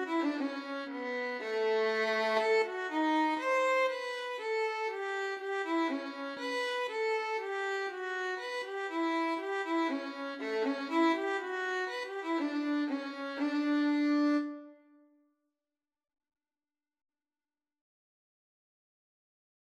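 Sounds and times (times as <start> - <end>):
minuet violin and cello duet: 0.0 - 14.6.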